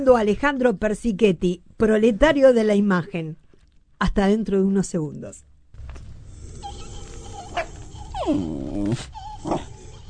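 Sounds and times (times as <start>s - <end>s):
speech: 0.0s - 3.4s, 4.0s - 5.5s, 8.2s - 9.7s
dog growling: 6.2s - 10.0s.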